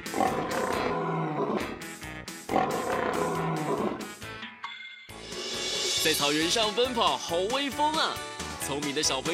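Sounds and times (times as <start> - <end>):
lion roaring: 0.1 - 1.9, 2.5 - 4.2
speech: 6.1 - 9.3.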